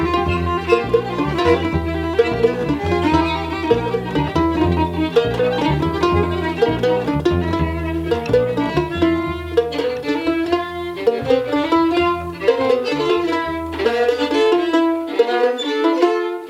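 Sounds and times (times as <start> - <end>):
bass lick: 0.0 - 16.3.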